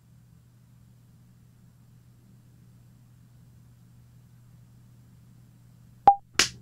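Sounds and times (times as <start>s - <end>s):
percussive tap: 6.1s - 6.6s
single hand clap: 6.1s - 6.6s.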